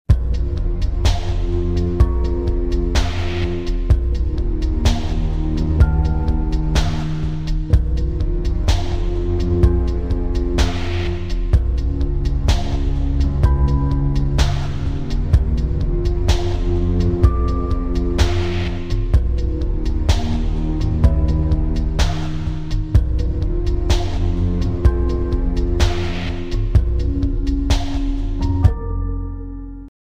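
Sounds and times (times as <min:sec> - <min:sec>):
eerie evening ambience: 0:00.1 - 0:29.9.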